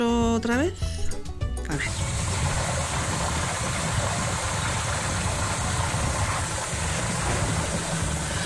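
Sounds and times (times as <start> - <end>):
speech: 0.4 - 0.9, 1.7 - 2.2
garden hose spraying water: 1.8 - 8.4.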